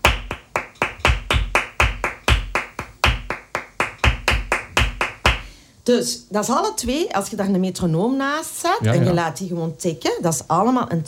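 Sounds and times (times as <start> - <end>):
bulerías flamenco rhythm clapped by hand: 0.0 - 5.5
speech: 5.8 - 11.0.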